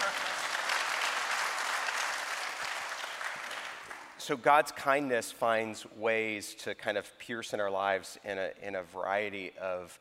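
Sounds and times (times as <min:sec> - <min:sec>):
audience applause: 0:00.0 - 0:04.2
speech: 0:04.3 - 0:10.0.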